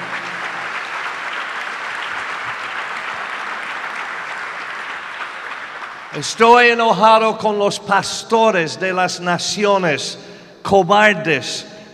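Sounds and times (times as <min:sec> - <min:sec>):
audience applause: 0:00.0 - 0:06.3
speech: 0:06.2 - 0:11.7.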